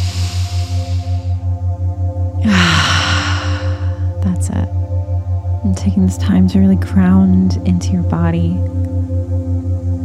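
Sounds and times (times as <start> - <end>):
person breathing during a guided lie-down relaxation: 0.0 - 1.5, 2.4 - 4.2
pulsing low drone: 0.0 - 10.0
speech: 5.8 - 9.2.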